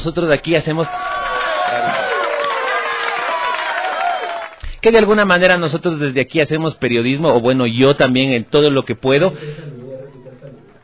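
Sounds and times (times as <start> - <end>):
speech: 0.0 - 1.1, 4.8 - 9.7
crowd cheering: 0.7 - 4.6, 9.4 - 10.8.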